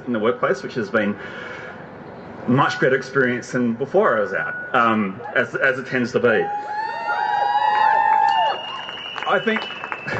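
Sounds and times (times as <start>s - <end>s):
speech: 0.1s - 1.7s, 2.4s - 6.9s, 9.3s - 10.1s
audience applause and cheering: 6.5s - 10.1s.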